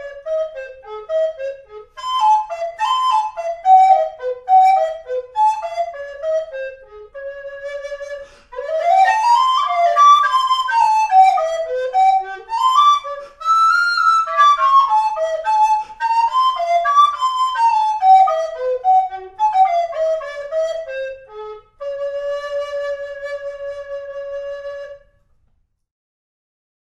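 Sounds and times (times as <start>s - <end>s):
alto recorder melody: 0.0s - 25.2s.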